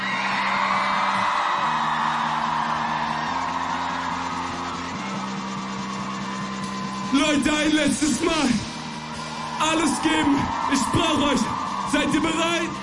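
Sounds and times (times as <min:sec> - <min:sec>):
loud crowd cheering and applause with whoops and yells: 0:00.0 - 0:12.8
speech: 0:07.4 - 0:08.6, 0:09.6 - 0:12.8.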